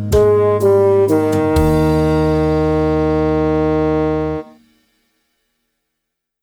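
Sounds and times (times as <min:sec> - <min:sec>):
high horn: 0:00.1 - 0:04.6.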